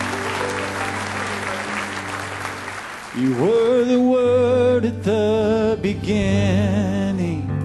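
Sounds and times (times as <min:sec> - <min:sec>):
audience applauding, hand clapping: 0:00.0 - 0:03.8
speech: 0:03.2 - 0:07.5.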